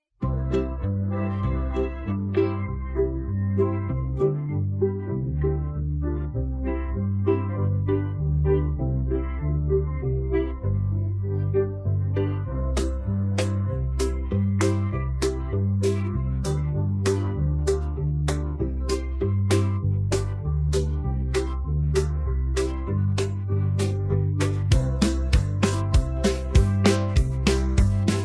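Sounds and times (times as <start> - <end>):
instrumental backing music: 0.2 - 28.2.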